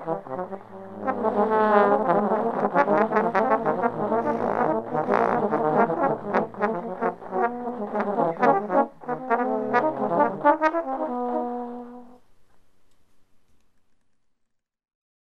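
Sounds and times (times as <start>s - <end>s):
ten trombones playing: 0.0s - 12.2s.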